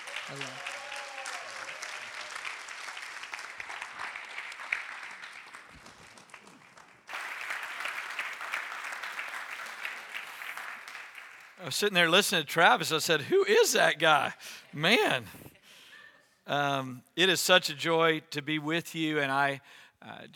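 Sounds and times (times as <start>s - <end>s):
audience applause welcoming a speaker: 0.0s - 11.8s
speech: 0.3s - 0.7s, 11.7s - 15.4s, 16.5s - 20.3s.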